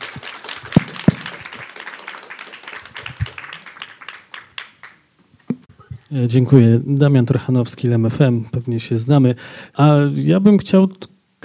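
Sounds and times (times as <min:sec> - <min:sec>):
crowd applause: 0:00.0 - 0:05.0
speech: 0:06.1 - 0:11.1.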